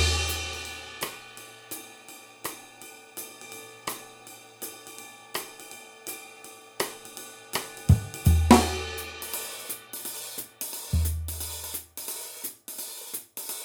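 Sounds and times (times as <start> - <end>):
swing music: 0.0 - 1.2, 7.9 - 9.8, 10.9 - 11.8.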